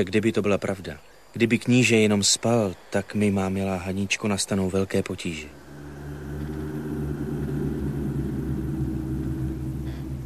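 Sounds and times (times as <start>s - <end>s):
speech: 0.0s - 5.6s
distant thunder rumbling in the mountains: 5.5s - 10.2s.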